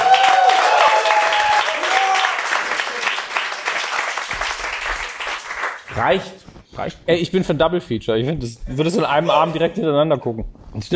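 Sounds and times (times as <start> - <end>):
crowd roaring applause: 0.0 - 5.9
speech: 6.0 - 10.9.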